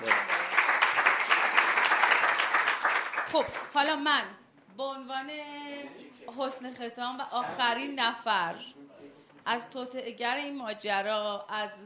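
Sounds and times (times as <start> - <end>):
group applauding for a birthday: 0.0 - 3.9
speech: 3.3 - 8.8, 9.5 - 11.8.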